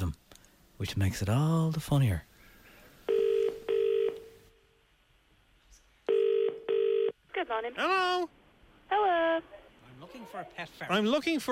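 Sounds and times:
speech: 0.8 - 2.3, 7.6 - 11.5
telephone line ringing tones: 3.1 - 4.5, 6.1 - 7.2.

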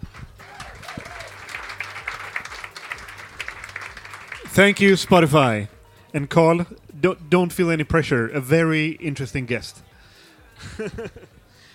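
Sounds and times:
audience applause: 0.0 - 5.3
speech: 4.6 - 9.9, 10.6 - 11.4
laughter: 10.6 - 11.4.

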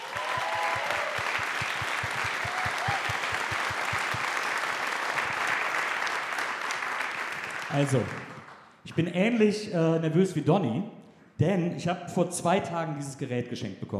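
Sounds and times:
audience applause: 0.0 - 9.1
speech: 7.7 - 8.3, 9.0 - 13.9.

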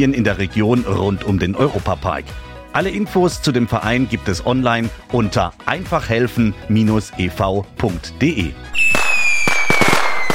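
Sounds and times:
speech: 0.0 - 9.0
firework whistling: 8.7 - 10.3.

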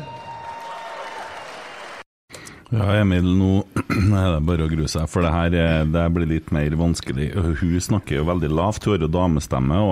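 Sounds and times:
live audience applause: 0.0 - 2.0
speech: 2.7 - 9.9.

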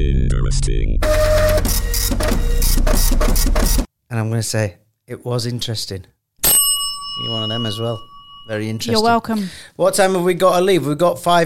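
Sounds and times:
speech: 0.1 - 6.2, 7.2 - 11.4
fax machine whirring and chattering: 1.0 - 3.9.

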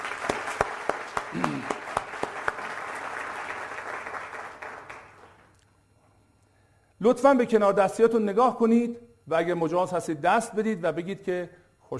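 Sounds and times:
audience applause at a lecture on marriage: 0.0 - 5.5
speech: 7.0 - 11.9.

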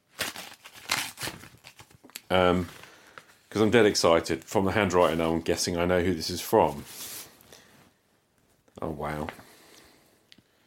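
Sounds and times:
paper envelope ripped open: 0.0 - 2.0
speech: 2.3 - 2.8, 3.6 - 7.0, 8.8 - 9.4.

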